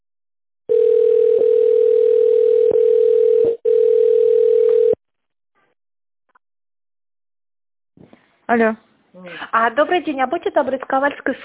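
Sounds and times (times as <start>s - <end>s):
telephone ringback tone: 0.7s - 5.0s
speech: 8.5s - 11.4s.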